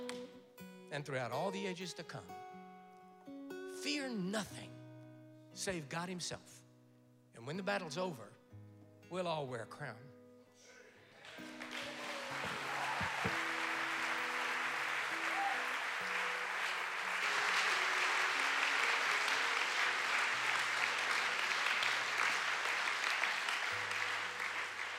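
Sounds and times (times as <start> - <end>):
speech: 0.9 - 2.5, 3.9 - 4.8, 5.6 - 6.6, 7.4 - 8.4, 9.1 - 10.1
audience clapping: 11.2 - 24.9.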